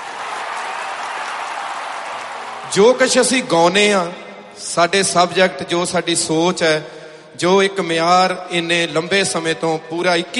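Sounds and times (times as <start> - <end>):
audience applause at a Punjabi music performance: 0.0 - 3.2
speech: 2.7 - 10.3.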